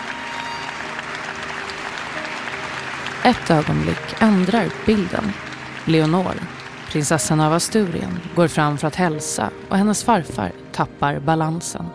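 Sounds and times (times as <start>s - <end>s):
sustained applause from audience: 0.0s - 9.1s
speech: 3.2s - 11.9s.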